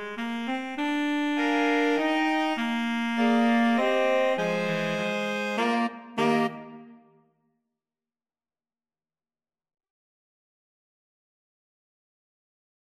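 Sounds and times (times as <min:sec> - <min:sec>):
flexible mixed ensemble of four players: 0:00.1 - 0:07.0.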